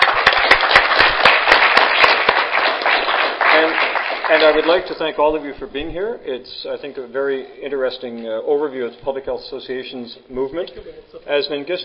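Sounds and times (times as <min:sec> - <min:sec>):
audience applause: 0:00.0 - 0:04.9
speech: 0:04.3 - 0:11.8.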